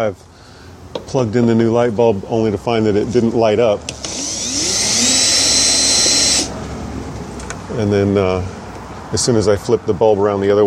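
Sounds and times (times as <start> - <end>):
speech: 0.0 - 0.3, 1.1 - 4.7, 7.8 - 10.6
power driver backing screws out of a Honda light assembly: 3.9 - 6.7.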